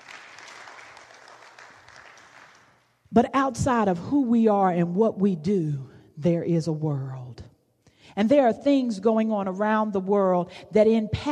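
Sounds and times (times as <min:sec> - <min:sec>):
audience hand clapping: 0:00.0 - 0:02.9
speech: 0:03.2 - 0:07.4, 0:08.2 - 0:11.3.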